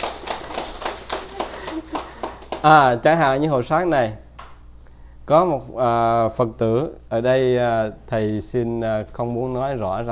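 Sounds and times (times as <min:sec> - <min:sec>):
audience clapping at a Buddhist monk's talk: 0:00.0 - 0:02.9
speech: 0:02.6 - 0:04.2, 0:05.3 - 0:10.1.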